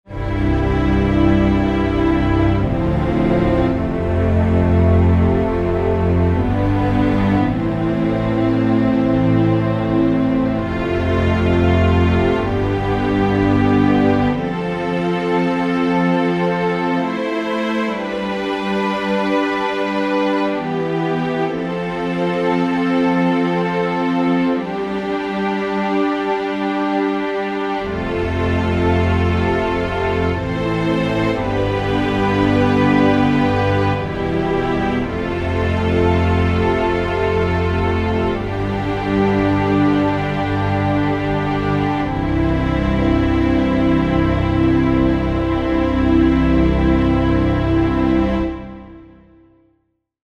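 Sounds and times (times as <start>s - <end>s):
underscore synth pad: 0.1s - 49.4s.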